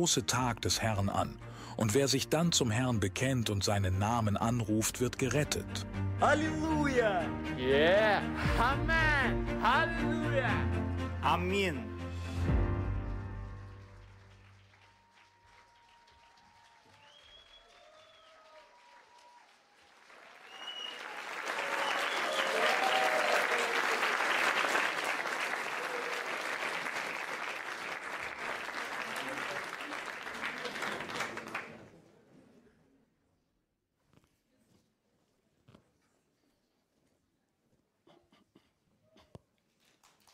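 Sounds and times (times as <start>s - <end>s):
speech: 0.0s - 11.9s
congregation applause at a Pentecost church service: 13.2s - 32.0s, 40.0s - 40.3s.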